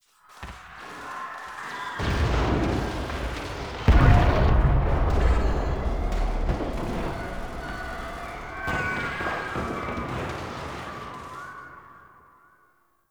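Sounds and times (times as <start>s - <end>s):
distant battle: 2.0s - 11.8s.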